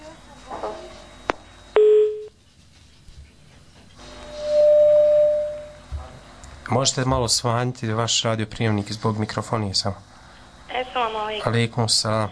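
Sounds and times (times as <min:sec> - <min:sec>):
telephone line tones as a call comes in: 0:01.1 - 0:02.4, 0:04.1 - 0:05.9
speech: 0:06.7 - 0:10.2, 0:10.9 - 0:12.3.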